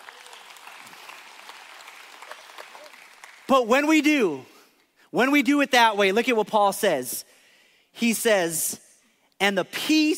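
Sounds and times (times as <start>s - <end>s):
audience applause: 0.0s - 3.5s
speech: 3.5s - 4.5s, 5.1s - 7.3s, 8.0s - 8.8s, 9.4s - 10.1s.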